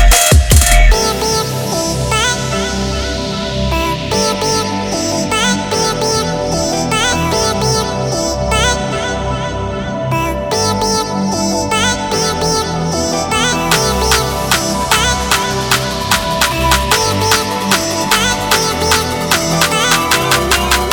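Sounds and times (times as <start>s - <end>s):
melodic trap music: 0.0s - 20.9s.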